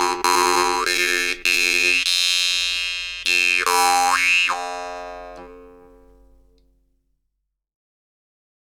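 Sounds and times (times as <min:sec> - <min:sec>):
jew's harp improvisation: 0:00.0 - 0:06.6.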